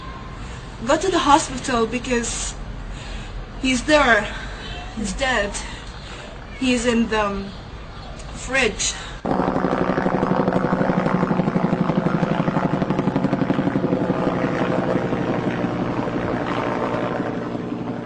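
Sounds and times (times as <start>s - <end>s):
speech: 0.8s - 2.6s, 3.6s - 4.4s, 5.0s - 5.7s, 6.6s - 7.6s, 8.5s - 9.4s
aircraft during an air raid: 9.2s - 18.0s.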